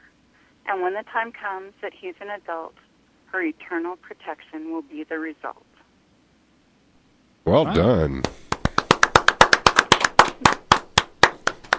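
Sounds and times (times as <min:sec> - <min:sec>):
speech: 0:00.7 - 0:05.7, 0:07.4 - 0:08.4
guests applauding in production booth: 0:07.8 - 0:11.7.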